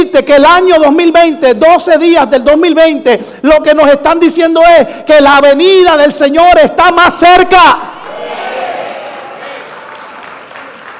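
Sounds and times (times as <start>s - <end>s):
speech: 0.0s - 8.4s
audience applause: 8.0s - 10.9s.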